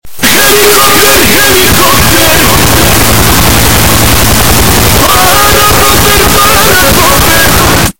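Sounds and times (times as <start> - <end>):
helicopter: 1.2 - 7.9.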